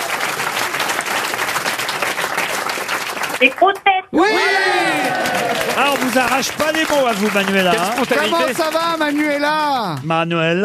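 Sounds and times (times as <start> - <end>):
audience clapping: 0.0 - 10.2
speech: 3.4 - 5.2, 5.8 - 10.6.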